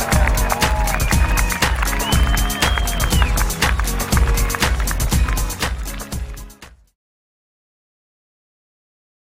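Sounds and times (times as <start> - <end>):
music: 0.0 - 7.0.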